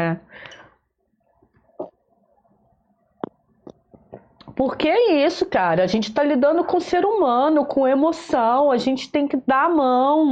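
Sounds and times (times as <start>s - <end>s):
speech: 0.0s - 0.6s, 4.6s - 10.3s
sipping water: 0.4s - 4.5s.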